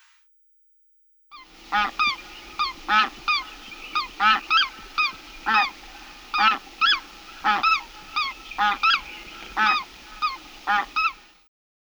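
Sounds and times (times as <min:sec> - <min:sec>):
lesser white-fronted goose calling: 0:01.5 - 0:11.3.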